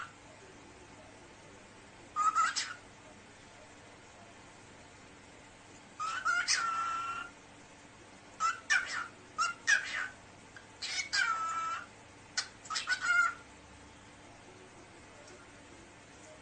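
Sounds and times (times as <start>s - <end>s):
cockatiel calling: 2.2s - 2.8s, 6.0s - 7.3s, 8.4s - 10.2s, 10.8s - 13.4s.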